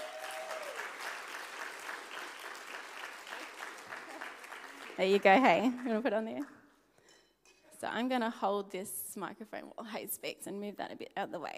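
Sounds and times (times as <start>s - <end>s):
audience clapping: 0.0s - 6.7s
speech: 5.0s - 6.6s, 7.8s - 11.5s.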